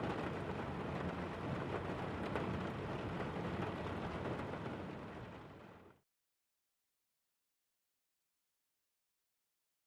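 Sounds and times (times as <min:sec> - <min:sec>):
heavy steady rain: 0:00.0 - 0:06.0.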